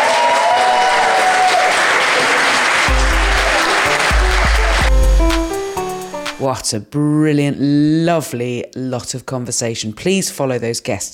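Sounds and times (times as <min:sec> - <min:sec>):
people cheering: 0:00.0 - 0:05.7
audience clapping: 0:00.0 - 0:06.4
deep pulsing music tones: 0:02.9 - 0:06.5
speech: 0:06.4 - 0:11.1.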